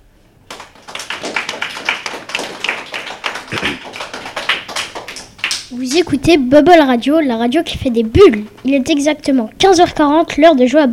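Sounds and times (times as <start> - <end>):
children applauding: 0.5 - 6.4
speech: 5.8 - 10.9.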